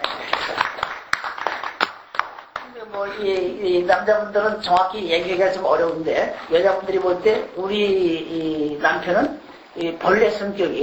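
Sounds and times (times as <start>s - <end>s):
sparse hand claps from an audience at a talk on addiction: 0.0s - 3.1s
speech: 3.0s - 10.8s.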